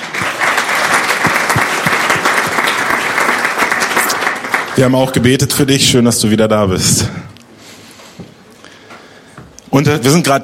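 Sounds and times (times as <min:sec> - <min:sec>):
audience applause: 0:00.0 - 0:05.3
speech: 0:04.8 - 0:07.3, 0:09.7 - 0:10.4.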